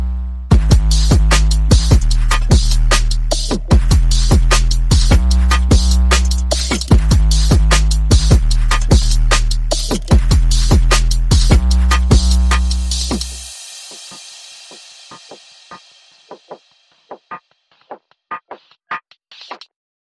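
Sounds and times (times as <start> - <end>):
bass: 0.0 - 13.5
percussion: 0.0 - 19.7.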